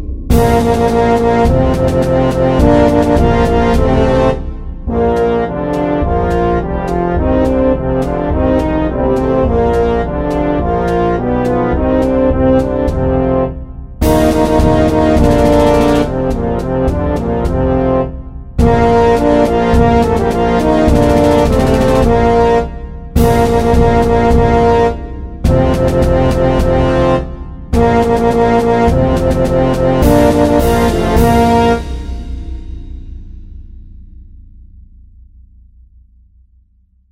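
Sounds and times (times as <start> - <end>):
medium fanfare and march music: 0.3 - 32.9.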